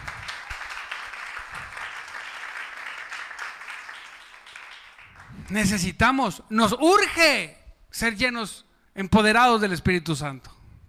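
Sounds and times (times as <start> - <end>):
audience applause: 0.0 - 5.6
speech: 5.5 - 10.5.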